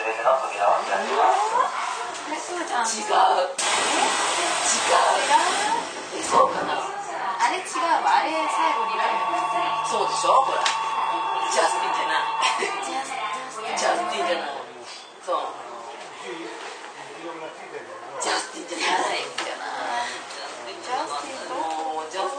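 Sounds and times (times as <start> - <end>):
people talking aboard a Keio 9000 series train: 0.0 - 16.7, 17.4 - 22.3
low rumble of a Keio 9000 series train: 4.4 - 14.5
steady held tone: 7.4 - 14.4.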